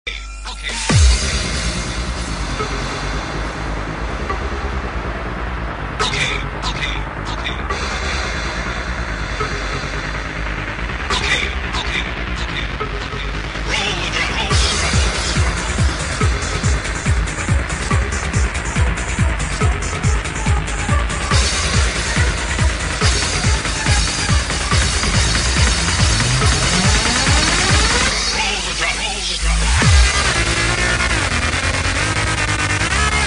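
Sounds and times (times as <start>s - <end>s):
drums: 0.3s - 33.2s.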